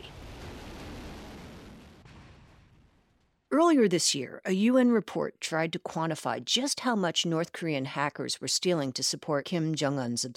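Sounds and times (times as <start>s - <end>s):
North Korean missile launch roaring in a propaganda video: 0.0s - 3.3s
speech: 3.6s - 10.3s.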